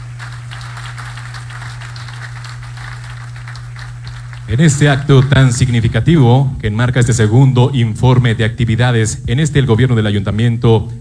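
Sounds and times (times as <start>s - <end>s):
audience applause: 0.0s - 5.5s
speech: 4.5s - 11.0s.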